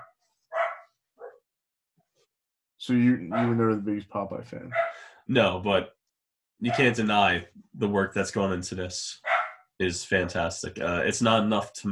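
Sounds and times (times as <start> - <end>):
female dog barking at someone outside the house: 0.0 - 1.4, 3.2 - 3.6, 4.7 - 5.1, 6.6 - 7.0, 9.2 - 9.6
speech: 2.8 - 6.0, 6.6 - 9.2, 9.8 - 11.8.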